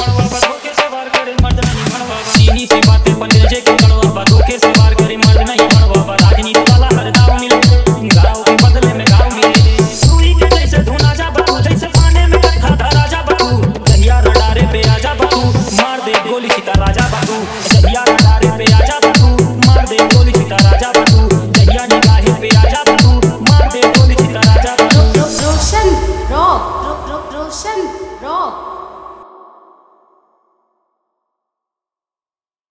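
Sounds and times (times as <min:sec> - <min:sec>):
Bhojpuri song mix: 0:00.0 - 0:29.4.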